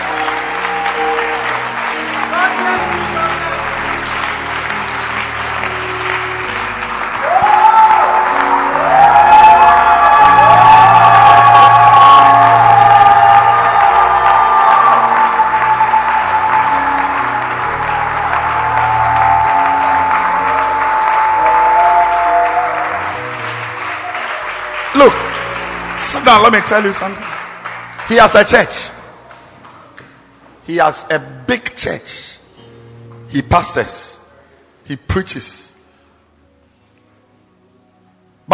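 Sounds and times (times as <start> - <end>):
audience clapping: 0.0 - 30.3
high whoops and shouting voices: 7.2 - 23.2
speech: 26.3 - 27.3, 28.1 - 29.0, 30.7 - 32.3, 33.3 - 34.1, 34.9 - 35.7.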